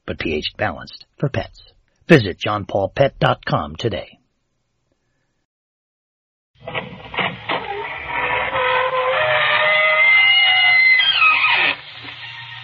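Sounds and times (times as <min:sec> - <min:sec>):
speech: 0:00.1 - 0:04.2
squeaking door opening: 0:06.6 - 0:12.6.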